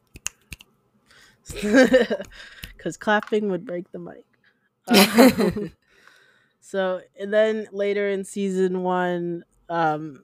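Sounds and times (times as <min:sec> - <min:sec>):
fingers snapping: 0:00.0 - 0:00.7
speech: 0:01.4 - 0:04.3, 0:04.9 - 0:05.8, 0:06.7 - 0:10.2
laughter: 0:01.5 - 0:02.4, 0:04.9 - 0:05.7.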